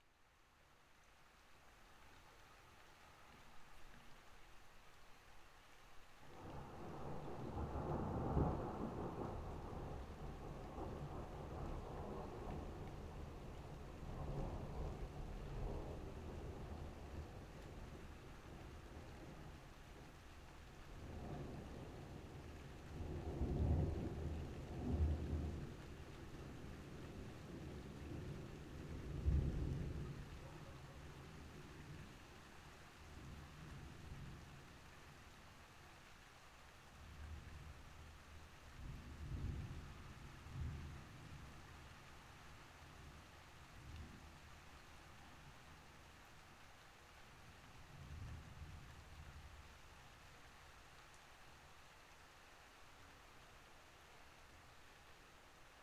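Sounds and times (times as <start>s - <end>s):
spring thunderstorm at night: 6.3s - 34.7s, 37.0s - 44.5s, 47.4s - 49.7s.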